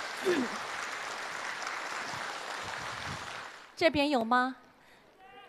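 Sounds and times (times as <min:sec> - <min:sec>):
audience applause: 0:00.0 - 0:03.8
speech: 0:00.2 - 0:00.7, 0:03.8 - 0:04.6.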